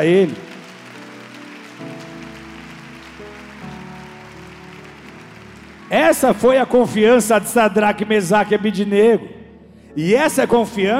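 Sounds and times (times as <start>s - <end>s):
speech: 0.0s - 0.4s, 5.9s - 9.4s, 10.0s - 10.9s
crowd applause: 0.0s - 7.3s
sustained keyboard chords: 0.0s - 10.9s.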